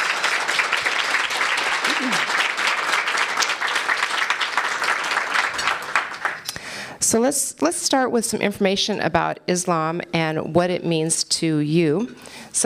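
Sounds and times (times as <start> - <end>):
audience applause welcoming speakers to an interfaith talk about Islam: 0.0 - 6.5
speech: 7.1 - 12.6.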